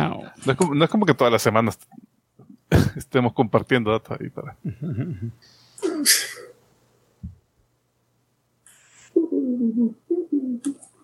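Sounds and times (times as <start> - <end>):
speech: 0.4 - 2.0, 2.7 - 6.4, 9.5 - 10.8
sharp breathy cough: 5.8 - 6.5.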